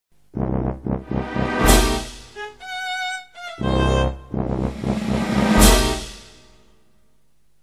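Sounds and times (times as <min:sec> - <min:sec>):
death themed music: 0:00.4 - 0:02.4, 0:03.6 - 0:06.4.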